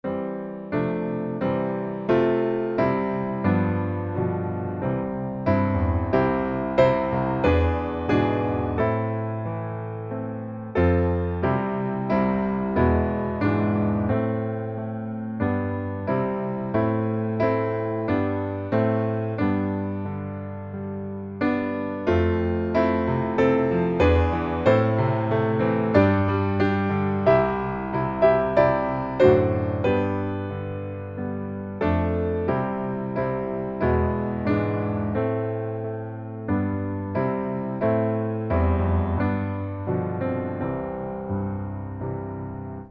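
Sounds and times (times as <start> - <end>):
piano: 0.0 - 42.9.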